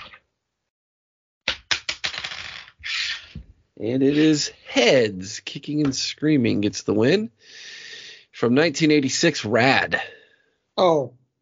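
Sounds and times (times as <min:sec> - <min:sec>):
coin being flipped and landing on a hard surface: 0:01.5 - 0:03.4
speech: 0:03.8 - 0:07.7, 0:08.4 - 0:10.2, 0:10.8 - 0:11.2.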